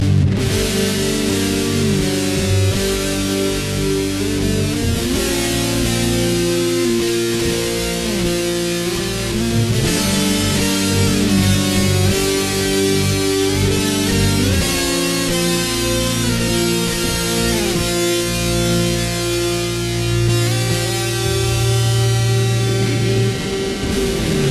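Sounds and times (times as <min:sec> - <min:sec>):
guitar: 0:00.0 - 0:24.4.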